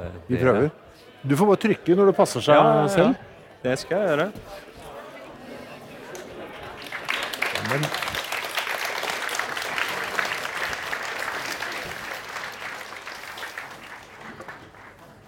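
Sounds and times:
speech: 0.2 - 4.7, 7.7 - 8.2
audience applause: 6.1 - 15.2.

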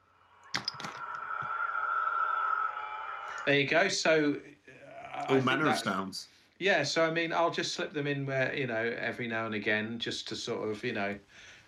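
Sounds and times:
howler monkeys calling: 1.0 - 3.5
speech: 3.4 - 4.6, 5.2 - 11.6.

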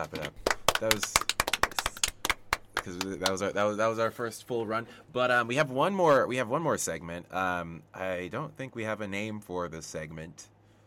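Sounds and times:
speech: 0.0 - 1.3, 2.8 - 10.5
people clapping: 0.0 - 3.5.

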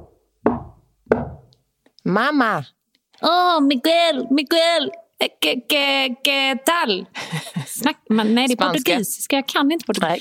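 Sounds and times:
knocking on a door: 0.0 - 1.5
speech: 2.0 - 10.2.

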